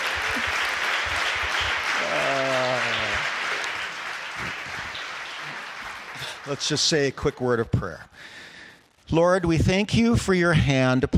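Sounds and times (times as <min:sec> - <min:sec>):
congregation clapping to welcome a preacher before a sermon: 0:00.0 - 0:07.5
person shouting: 0:02.0 - 0:03.2
speech: 0:06.5 - 0:08.4, 0:09.1 - 0:11.1.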